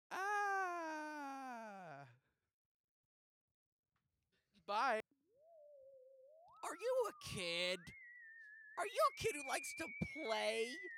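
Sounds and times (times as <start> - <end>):
voice imitating a ghostly scream: 0.1 - 2.1
speech: 4.7 - 5.1, 6.7 - 8.0, 8.8 - 10.9.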